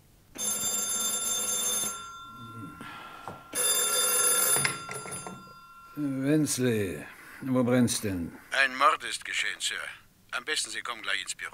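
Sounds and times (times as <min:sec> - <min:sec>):
old-style telephone bell ringing: 0:00.4 - 0:07.2
telephone handset being picked up: 0:03.2 - 0:05.6
speech: 0:06.0 - 0:11.5.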